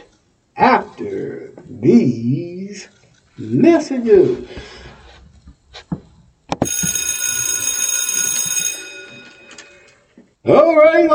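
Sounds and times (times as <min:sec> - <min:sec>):
speech: 0:00.6 - 0:04.8, 0:10.5 - 0:11.1
electric bell ringing: 0:06.6 - 0:10.1.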